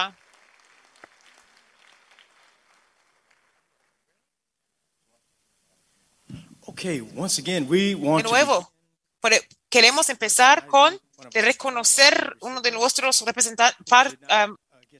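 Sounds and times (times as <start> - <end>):
speech: 0.0 - 0.2, 6.8 - 14.9
audience applause: 0.0 - 4.3.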